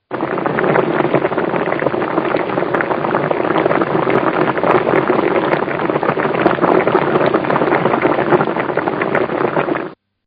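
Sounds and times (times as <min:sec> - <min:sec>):
water boiling during food prep: 0:00.0 - 0:10.0.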